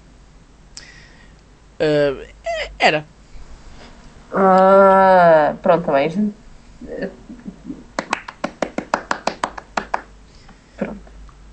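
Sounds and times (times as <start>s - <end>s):
speech: 1.8s - 3.1s, 4.3s - 7.2s
hands clapping: 8.0s - 10.1s.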